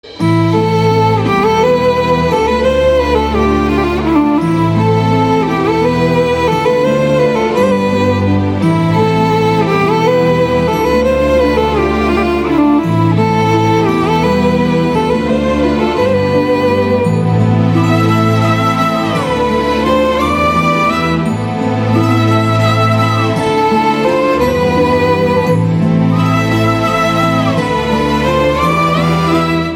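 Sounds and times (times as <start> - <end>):
background music ringtone: 0.0 - 29.7.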